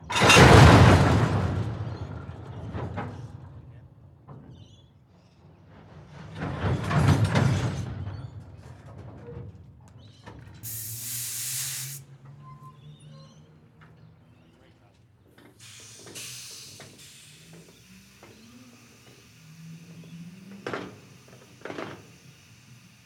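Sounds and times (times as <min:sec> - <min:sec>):
rail cars slamming hard and coupling together: 0:00.0 - 0:09.6, 0:10.2 - 0:14.3, 0:15.3 - 0:23.0
air released from rail cars: 0:10.6 - 0:12.1, 0:15.6 - 0:23.0.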